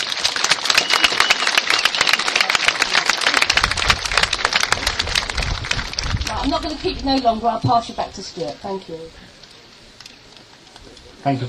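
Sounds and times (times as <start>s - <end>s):
audience applause: 0.0s - 7.3s
speech: 6.4s - 9.2s, 11.2s - 11.4s.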